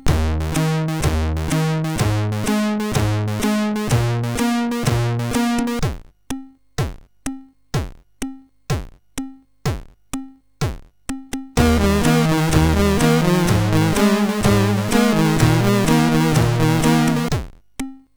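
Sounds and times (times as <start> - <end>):
SID MOS6581R3 chip sound: 0.1 - 5.8, 11.6 - 17.3.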